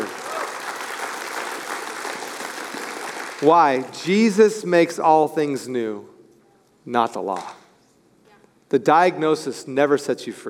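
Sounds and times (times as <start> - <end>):
audience clapping: 0.0 - 3.9
speech: 3.4 - 6.1, 6.8 - 7.6, 8.7 - 10.4.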